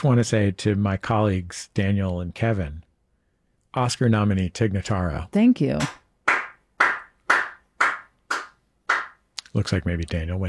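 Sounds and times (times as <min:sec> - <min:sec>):
speech: 0:00.0 - 0:02.8, 0:03.7 - 0:06.0, 0:09.5 - 0:10.4
single person clapping: 0:05.8 - 0:09.2.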